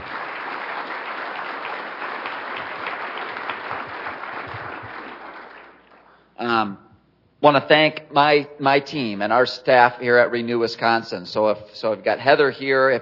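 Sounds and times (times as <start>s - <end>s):
audience round of applause: 0.0s - 6.1s
speech: 6.6s - 6.8s, 7.4s - 13.0s.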